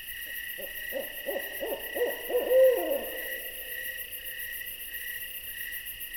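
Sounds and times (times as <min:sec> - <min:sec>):
insects trilling: 0:00.3 - 0:06.0
owl hooting: 0:00.6 - 0:05.3.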